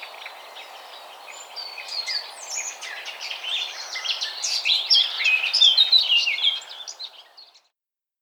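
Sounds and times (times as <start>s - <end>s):
Eurasian blackcap song: 1.3s - 7.5s.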